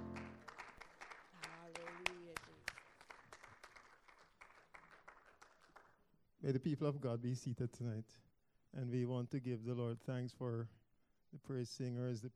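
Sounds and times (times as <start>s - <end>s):
audience applauding: 0.0s - 5.9s
speech: 6.4s - 12.3s.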